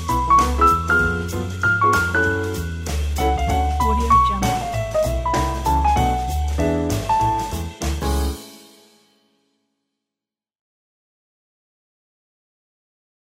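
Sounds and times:
upbeat jazz piano: 0:00.0 - 0:08.8.

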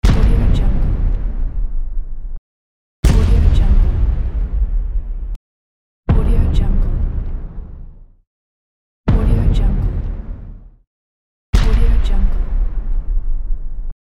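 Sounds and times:
boom impact: 0:00.0 - 0:02.4, 0:03.0 - 0:05.4, 0:06.1 - 0:08.2, 0:09.1 - 0:10.8, 0:11.6 - 0:13.9.

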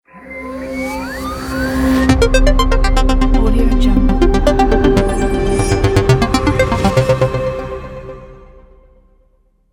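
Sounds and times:
tech logo jingle: 0:01.7 - 0:08.4.

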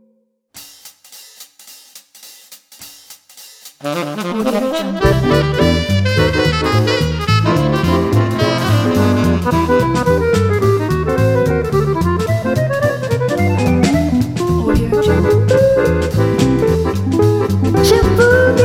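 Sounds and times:
swing jazz with saxophone: 0:03.8 - 0:18.6
person singing swing jazz vocal: 0:14.4 - 0:15.9, 0:17.8 - 0:18.6.

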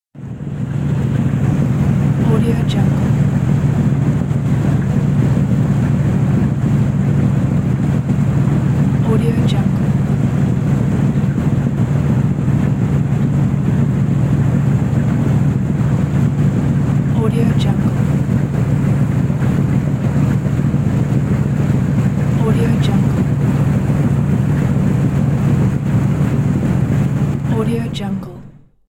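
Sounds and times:
engine: 0:00.1 - 0:28.7.

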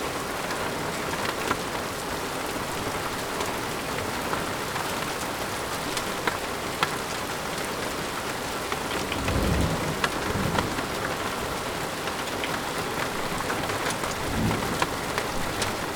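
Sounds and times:
rain: 0:00.0 - 0:15.9
light hail: 0:04.2 - 0:15.9
thunder: 0:09.0 - 0:11.3, 0:14.2 - 0:15.9.

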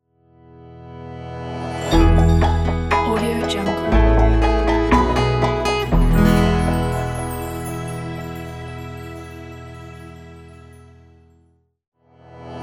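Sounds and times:
serene logo jingle: 0:01.6 - 0:11.2.

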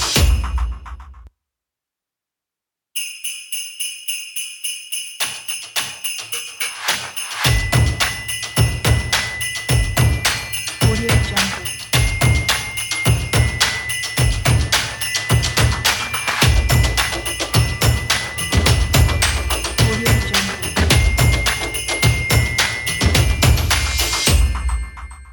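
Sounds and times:
bells jingling: 0:03.0 - 0:25.3
hand claps: 0:05.2 - 0:25.2.

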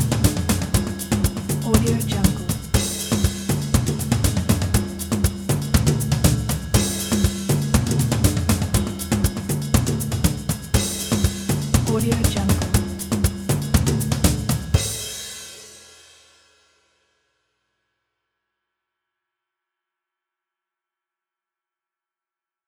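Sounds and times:
jazz drums: 0:00.0 - 0:16.0.

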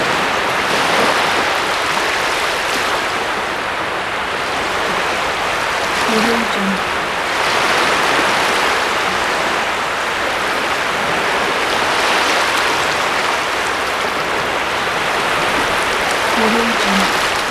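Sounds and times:
sea waves swashing: 0:00.0 - 0:17.5.

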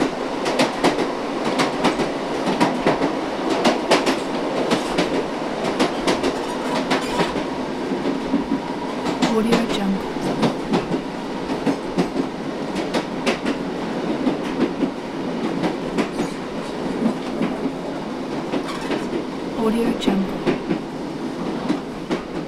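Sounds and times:
railway carriage interior: 0:00.0 - 0:22.4.

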